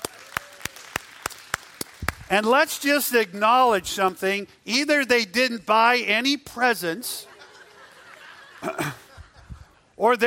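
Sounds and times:
sparse hand claps from a few people: 0:00.0 - 0:02.3
speech: 0:02.3 - 0:07.3, 0:10.0 - 0:10.2
laughter: 0:07.0 - 0:10.0.

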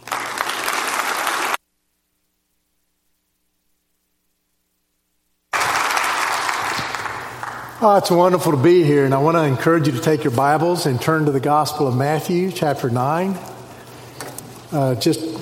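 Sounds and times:
church congregation applauding a guest speaker: 0:00.0 - 0:01.6, 0:05.5 - 0:08.4
speech: 0:07.8 - 0:13.5, 0:14.7 - 0:15.4.

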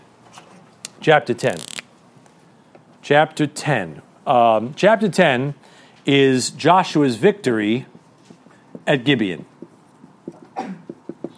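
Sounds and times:
speech: 0:01.0 - 0:01.7, 0:03.1 - 0:07.9, 0:08.8 - 0:09.5
person sneezing: 0:10.5 - 0:10.9.

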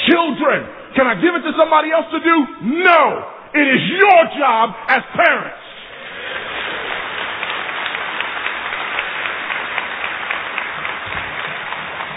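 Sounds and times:
speech: 0:00.1 - 0:05.6
large audience clapping: 0:05.8 - 0:12.1.

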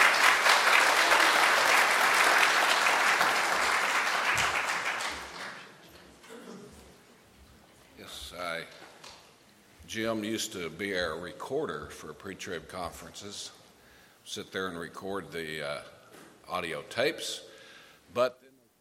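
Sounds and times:
audience applause: 0:00.0 - 0:05.8
speech: 0:10.0 - 0:13.6, 0:14.3 - 0:17.5, 0:18.1 - 0:18.4.

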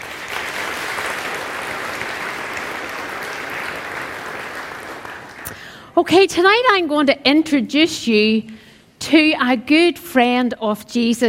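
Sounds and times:
crowd applause: 0:00.0 - 0:05.8
speech: 0:06.0 - 0:11.2.

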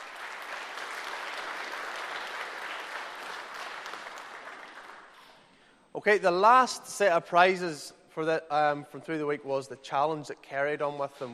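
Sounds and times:
audience applause: 0:00.0 - 0:05.2
speech: 0:06.0 - 0:11.3.

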